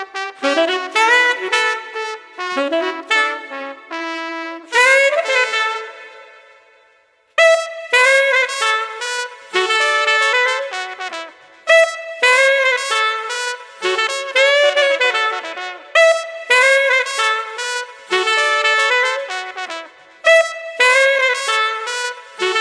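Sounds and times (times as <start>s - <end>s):
playful street saxophone: 0.0s - 22.6s.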